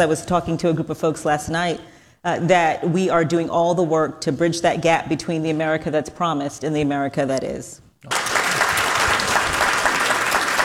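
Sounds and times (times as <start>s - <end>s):
speech: 0.0s - 8.2s
audience applause: 8.1s - 10.6s.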